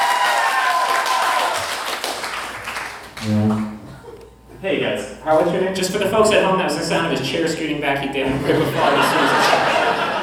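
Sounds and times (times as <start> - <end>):
audience applause at a live taped event: 0.0 - 3.7
speech: 3.2 - 3.8, 4.6 - 10.0
laughter: 8.2 - 10.2.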